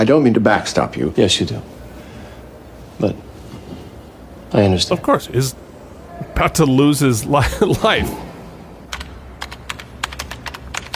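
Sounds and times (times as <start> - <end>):
speech: 0.0 - 1.8, 3.0 - 3.2, 4.5 - 5.7, 6.4 - 8.3
low hum: 0.0 - 10.9
laughter: 7.3 - 8.2
fingers typing on a computer keyboard: 8.9 - 10.9.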